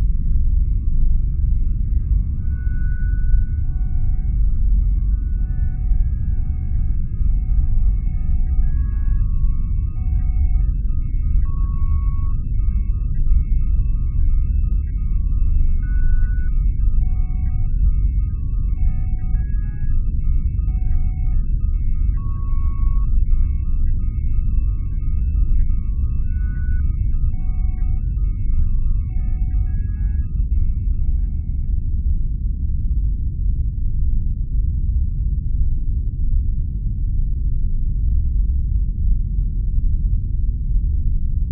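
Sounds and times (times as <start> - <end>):
spaceship ambience deep rumbling: 0.0 - 41.5
soft beeping electronic tones: 0.1 - 31.8.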